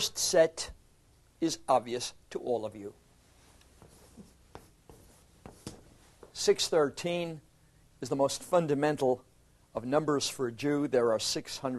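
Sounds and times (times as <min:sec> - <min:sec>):
speech: 0:00.0 - 0:00.8, 0:01.4 - 0:03.0, 0:06.4 - 0:11.7
chalk writing numbers on a blackboard: 0:03.8 - 0:06.0.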